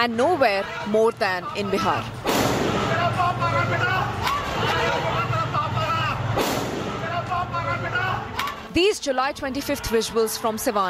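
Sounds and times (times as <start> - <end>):
speech: 0.0 - 2.9, 8.8 - 10.8
crowd noise and voices at a Bihar Bandh protest: 0.0 - 10.8
AK-47 assault rifle shots fired by a police constable: 2.2 - 2.9, 6.4 - 7.0.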